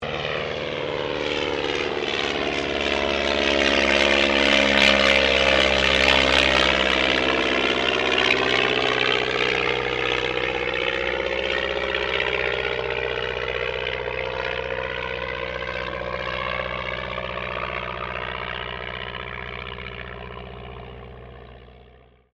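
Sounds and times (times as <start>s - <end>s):
de Havilland DH82A Tiger Moth aircraft passing: 0.0s - 22.3s.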